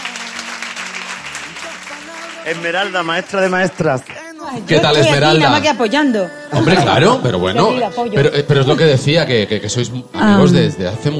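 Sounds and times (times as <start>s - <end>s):
studio applause: 0.0s - 4.4s
speech: 2.4s - 11.1s.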